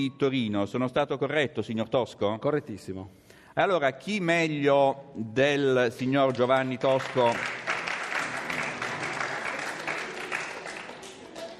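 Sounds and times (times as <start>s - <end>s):
speech: 0.0s - 7.6s
audience applause: 6.2s - 11.5s.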